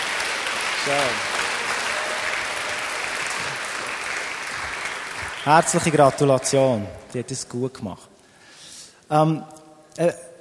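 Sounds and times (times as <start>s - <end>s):
audience applause: 0.0s - 7.2s
speech: 0.8s - 1.3s, 5.4s - 8.1s, 9.1s - 10.2s.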